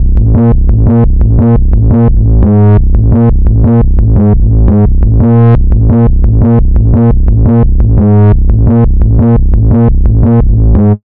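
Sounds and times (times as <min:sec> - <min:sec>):
drum and bass music: 0:00.0 - 0:11.0.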